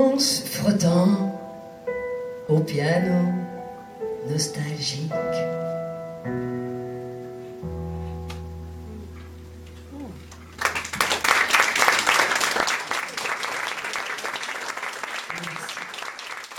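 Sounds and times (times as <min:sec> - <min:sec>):
speech: 0:00.2 - 0:01.3, 0:02.5 - 0:03.4, 0:04.3 - 0:06.6
audience applause: 0:10.4 - 0:16.5.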